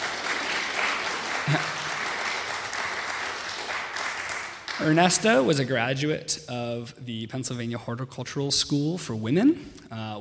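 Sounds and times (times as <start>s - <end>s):
audience applause: 0.0s - 5.6s
speech: 1.5s - 1.8s, 4.8s - 10.1s.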